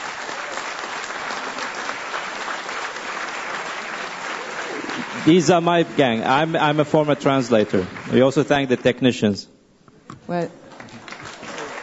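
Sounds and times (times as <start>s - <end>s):
audience applause: 0.0s - 9.2s, 10.6s - 11.8s
speech: 5.2s - 9.6s, 10.3s - 10.6s.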